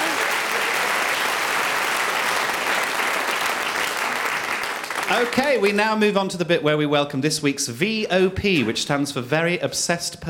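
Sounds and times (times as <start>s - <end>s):
audience applause: 0.0s - 5.8s
speech: 5.1s - 10.2s.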